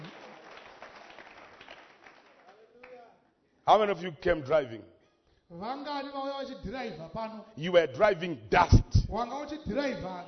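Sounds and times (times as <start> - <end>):
crowd clapping: 0.0 - 3.2
speech: 3.7 - 10.2.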